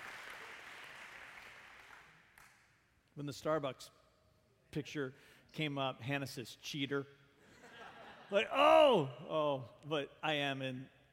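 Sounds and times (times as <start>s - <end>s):
faint scattered audience applause: 0.0s - 2.6s
speech: 3.2s - 4.0s, 4.7s - 7.2s, 8.3s - 11.0s.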